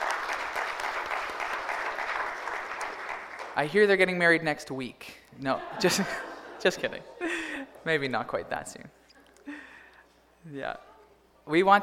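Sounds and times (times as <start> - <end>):
audience applauding: 0.0 - 3.7
speech: 3.6 - 9.0, 10.5 - 10.9, 11.5 - 11.8
laughter: 5.5 - 7.8.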